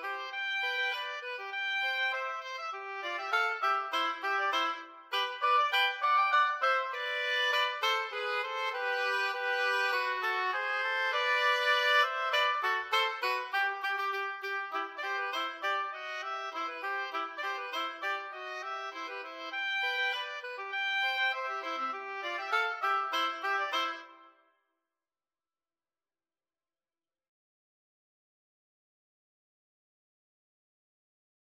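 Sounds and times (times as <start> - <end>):
oboe duet: 0.0 - 24.4.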